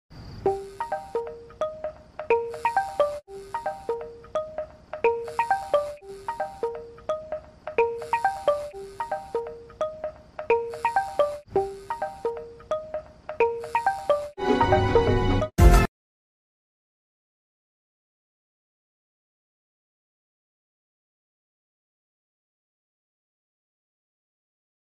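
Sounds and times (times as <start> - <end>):
Oppo F9 Pro phone ringtone: 0.5 - 15.5.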